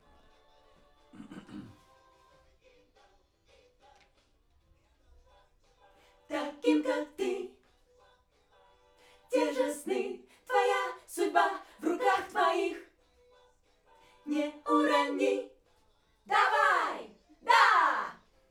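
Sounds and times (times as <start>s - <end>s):
backing vocals on AKG microphone: 6.3s - 7.5s, 9.3s - 12.8s, 14.3s - 15.5s, 16.3s - 18.2s.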